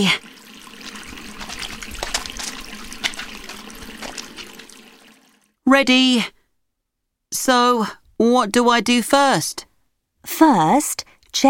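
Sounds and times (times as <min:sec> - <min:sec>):
speech: 0:00.0 - 0:00.3, 0:05.7 - 0:06.4, 0:07.3 - 0:11.4
tap water running while hands are washed: 0:00.0 - 0:05.6.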